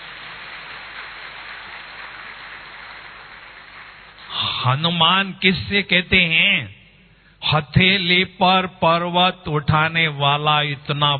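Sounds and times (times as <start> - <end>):
audience clapping hands: 0.0 - 4.5
speech: 4.6 - 6.8, 7.4 - 11.1.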